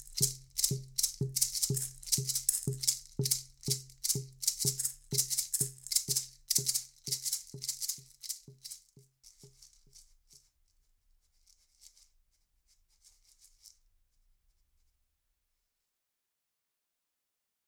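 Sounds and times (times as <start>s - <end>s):
maracas from Colombia: 0.0s - 10.6s.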